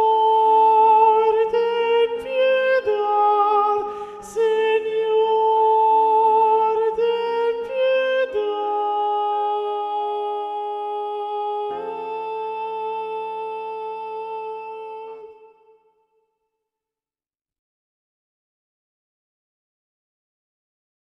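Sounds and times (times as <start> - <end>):
predominant treble voice singing: 0.0 - 15.8.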